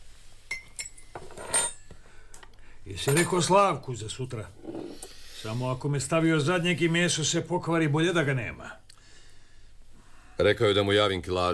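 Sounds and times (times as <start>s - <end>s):
cutlery and dishes clinking during a meal: 0.5s - 1.9s, 3.0s - 3.5s
speech: 2.9s - 4.8s, 5.4s - 8.8s, 10.4s - 11.5s.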